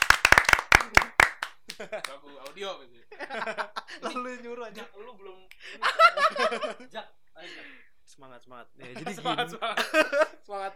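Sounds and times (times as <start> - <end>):
hand clapping: 0.0 - 2.6
laughter: 0.6 - 7.8, 8.8 - 10.7
speech: 1.8 - 10.7.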